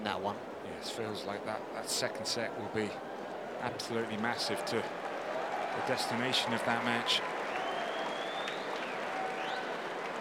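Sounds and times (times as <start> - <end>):
speech: 0.1 - 5.0, 5.8 - 7.3
tennis crowd cheering and applauding as Berrettini returns to court: 4.2 - 10.2
crowd whistles: 7.5 - 9.8.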